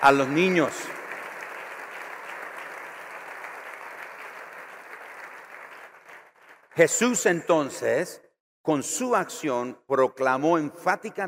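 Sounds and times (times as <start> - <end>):
speech: 0.0 - 1.0, 6.8 - 11.2
audience applause: 0.0 - 6.8.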